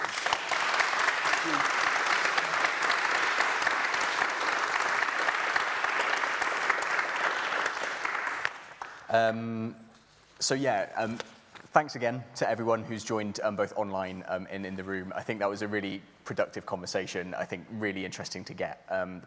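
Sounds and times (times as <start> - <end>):
audience applause: 0.0 - 9.1
speech: 9.1 - 9.8, 10.4 - 19.2.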